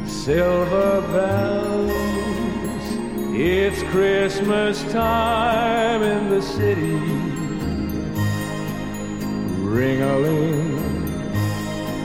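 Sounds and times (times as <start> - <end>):
male vocalist singing: 0.0 - 7.8, 9.5 - 11.3
orchestra: 0.0 - 12.0.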